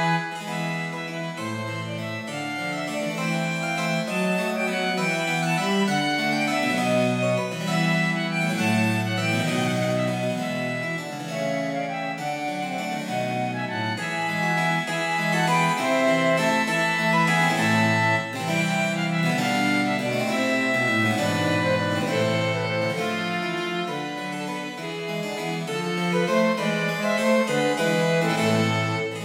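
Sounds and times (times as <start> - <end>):
cello playing a gigue: 0.0 - 29.2
flute playing a gigue: 0.0 - 29.2
harpsichord playing a gigue: 0.0 - 29.2
violin playing a gigue: 0.0 - 29.2.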